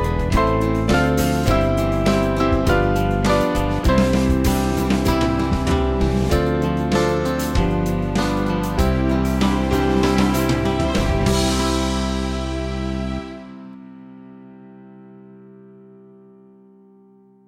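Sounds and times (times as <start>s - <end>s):
church band backing music: 0.0s - 13.7s.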